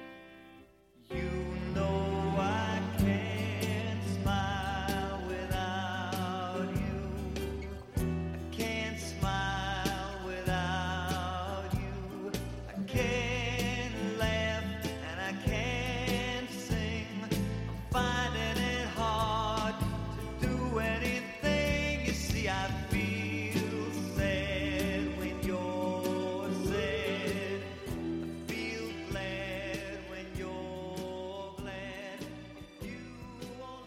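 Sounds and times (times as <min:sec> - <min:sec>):
upbeat pop song with full band, drums and bass: 0:01.1 - 0:33.8.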